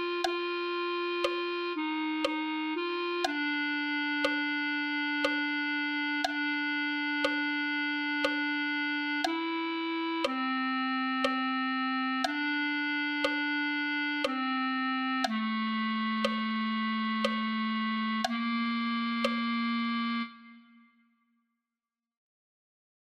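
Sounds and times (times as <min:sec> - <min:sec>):
clarinet: 0:00.0 - 0:21.1.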